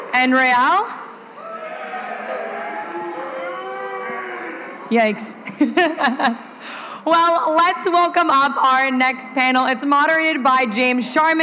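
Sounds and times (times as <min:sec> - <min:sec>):
speech: 0:00.2 - 0:01.0, 0:04.9 - 0:11.4
large crowd roaring, shouting and whooping: 0:01.2 - 0:05.1.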